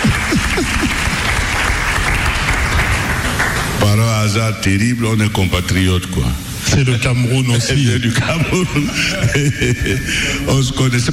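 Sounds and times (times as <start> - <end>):
vocal cries or whoops: 0.0 - 1.4
laughter: 0.0 - 1.6, 7.8 - 10.8
crowd applause: 0.0 - 4.4
speech: 4.0 - 11.1.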